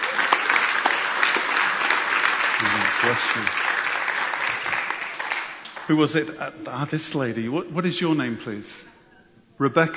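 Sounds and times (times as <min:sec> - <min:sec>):
audience applause: 0:00.0 - 0:06.0
speech: 0:03.0 - 0:03.6, 0:05.9 - 0:08.9, 0:09.6 - 0:09.9.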